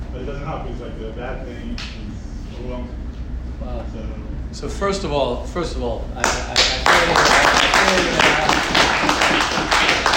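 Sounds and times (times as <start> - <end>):
speech: 0.2 - 3.0, 3.6 - 10.1
audience clapping: 6.2 - 10.1.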